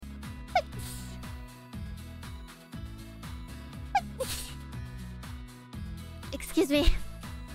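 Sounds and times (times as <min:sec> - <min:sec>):
person sneezing: 0:00.6 - 0:01.2, 0:04.0 - 0:04.6.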